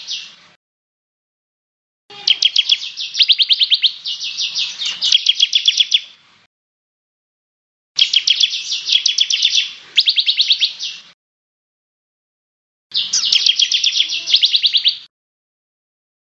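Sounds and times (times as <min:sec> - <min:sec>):
bird song: 0:00.0 - 0:00.4, 0:02.1 - 0:06.2, 0:08.0 - 0:11.2, 0:12.9 - 0:15.1.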